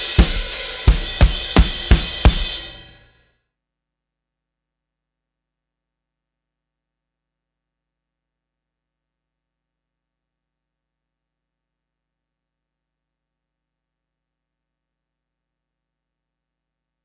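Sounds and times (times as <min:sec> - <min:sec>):
live drums: 0:00.0 - 0:03.0.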